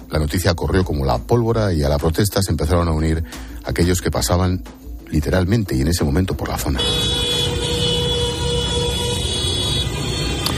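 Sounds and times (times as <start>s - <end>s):
speech: 0.1s - 7.3s
car horns honking in support of protests: 6.7s - 10.5s.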